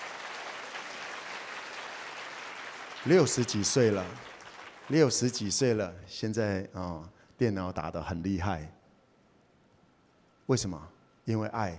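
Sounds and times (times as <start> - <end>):
audience applause: 0.0 - 5.4
speech: 3.0 - 4.3, 4.9 - 8.8, 10.5 - 11.7.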